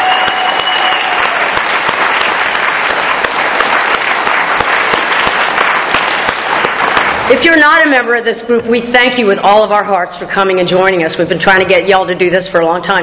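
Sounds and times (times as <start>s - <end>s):
audience applause: 0.0s - 7.3s
speech: 7.3s - 13.0s.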